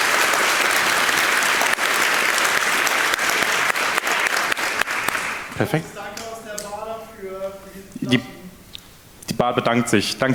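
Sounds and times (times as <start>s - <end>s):
audience applause: 0.0s - 6.4s
speech: 5.6s - 6.0s, 7.7s - 8.3s, 9.3s - 10.3s.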